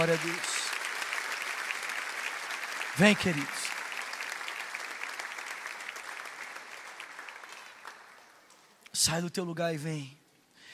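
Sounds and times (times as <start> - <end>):
speech: 0.0 - 0.5, 3.0 - 3.6, 9.0 - 10.2
audience applause: 0.0 - 8.6.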